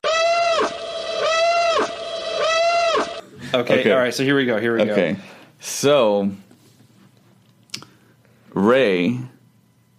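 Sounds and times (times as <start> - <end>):
alarm sound effect: 0.0 - 3.3
speech: 3.5 - 6.4, 8.6 - 9.3.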